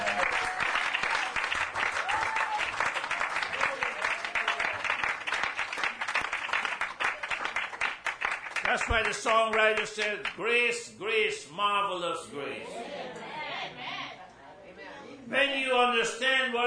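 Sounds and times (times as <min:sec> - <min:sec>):
audience clapping: 0:00.0 - 0:10.4
speech: 0:08.8 - 0:13.0, 0:15.3 - 0:16.6.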